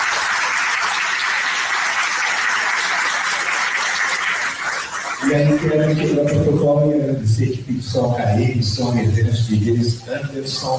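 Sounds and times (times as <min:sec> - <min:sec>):
round of applause: 0:00.0 - 0:06.2
speech: 0:05.3 - 0:10.7.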